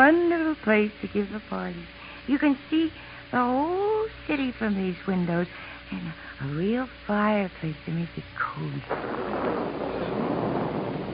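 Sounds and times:
speech: 0.0s - 10.2s
thunder: 8.9s - 11.1s.

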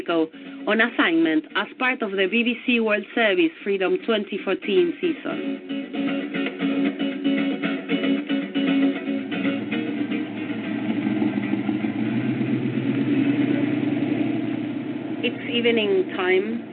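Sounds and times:
speech: 0.1s - 6.2s, 15.6s - 16.7s
car engine creeping through a border checkpoint: 5.4s - 16.7s.

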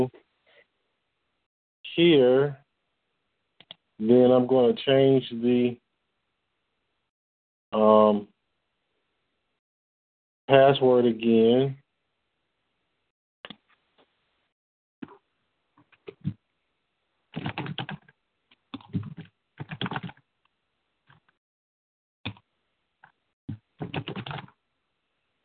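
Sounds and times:
speech: 0.0s - 0.2s, 2.0s - 2.6s, 4.0s - 5.8s, 7.7s - 8.3s, 10.5s - 11.8s
typing on a computer keyboard: 17.4s - 18.1s, 18.8s - 20.2s, 23.8s - 24.5s.

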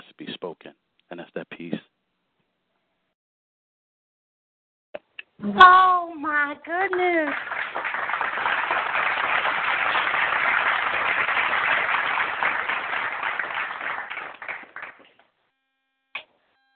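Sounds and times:
speech: 5.5s - 5.8s, 6.5s - 7.8s
audience applause: 6.7s - 15.1s.

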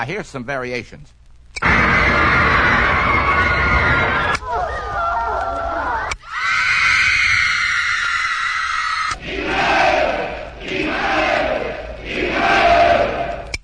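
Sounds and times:
speech: 0.0s - 1.2s
recorded crowd shouting and roaring: 1.6s - 13.5s.

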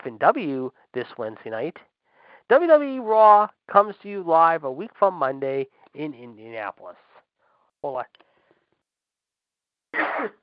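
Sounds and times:
speech: 0.0s - 1.9s, 2.5s - 7.1s, 7.8s - 8.2s, 10.0s - 10.4s
sneeze: 10.0s - 10.4s.

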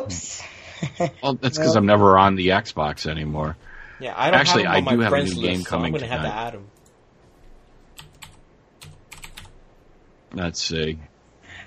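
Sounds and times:
speech: 0.0s - 6.7s, 10.3s - 11.1s
laughter: 4.3s - 6.4s
typing an Xbox gamertag on a computer keyboard: 8.0s - 9.6s.

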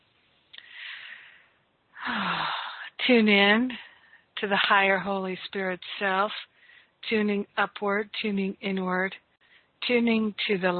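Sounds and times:
group breathing in and out during a guided healing meditation: 0.6s - 2.6s, 6.5s - 7.0s
speech: 3.1s - 9.2s, 9.8s - 10.7s.

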